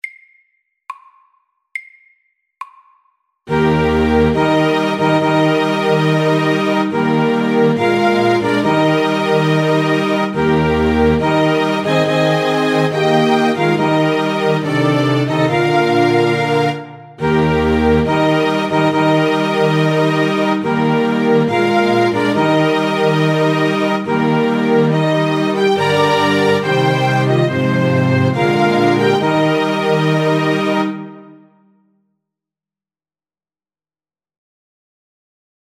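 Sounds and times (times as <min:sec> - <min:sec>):
wedding march music: 0:03.5 - 0:31.7.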